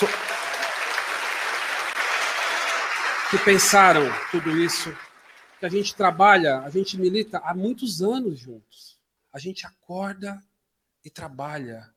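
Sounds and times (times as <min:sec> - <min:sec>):
crowd applause: 0:00.0 - 0:06.5
speech: 0:03.3 - 0:05.0, 0:05.6 - 0:11.9.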